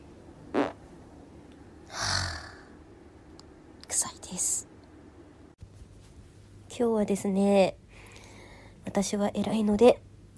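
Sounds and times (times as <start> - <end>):
fart from a person with an upset stomach: 0.5 - 0.8
speech: 4.3 - 4.5, 6.8 - 7.8, 9.0 - 10.3.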